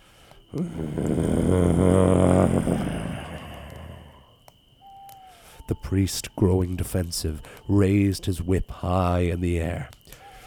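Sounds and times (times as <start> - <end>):
speech: 0.5 - 1.8, 5.9 - 10.0
creature's angry terrifying growl: 0.5 - 4.3.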